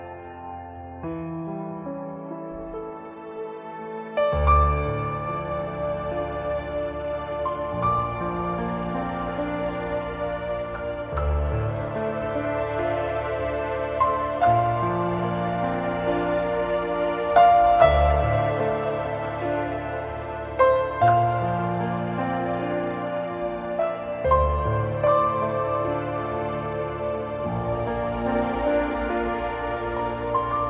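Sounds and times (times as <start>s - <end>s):
sad piano loop: 0.0s - 30.6s.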